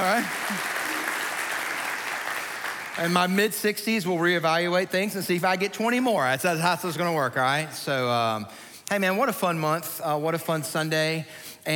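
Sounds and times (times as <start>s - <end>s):
audience clapping: 0.0s - 3.5s
speech: 0.2s - 0.8s, 3.0s - 11.7s.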